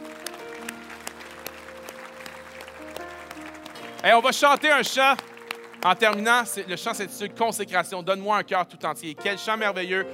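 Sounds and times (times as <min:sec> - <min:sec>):
audience applause: 0:00.0 - 0:06.6
speech: 0:04.0 - 0:10.1.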